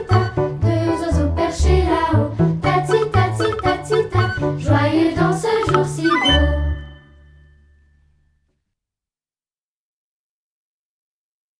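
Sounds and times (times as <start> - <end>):
vocal song: 0.0 - 7.2.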